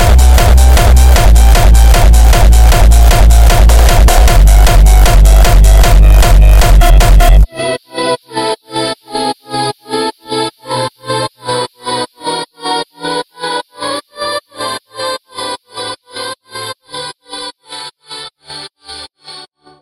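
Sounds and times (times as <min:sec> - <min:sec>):
hardstyle music: 0:00.0 - 0:13.2.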